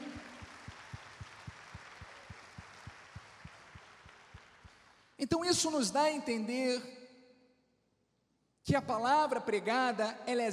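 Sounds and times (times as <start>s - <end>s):
crowd applauding: 0.0s - 5.2s
speech: 5.2s - 7.0s, 8.7s - 10.5s.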